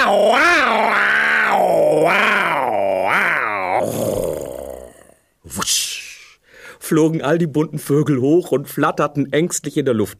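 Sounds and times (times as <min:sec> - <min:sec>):
man imitating a tiger roar: 0:00.0 - 0:06.0
speech: 0:06.9 - 0:10.1.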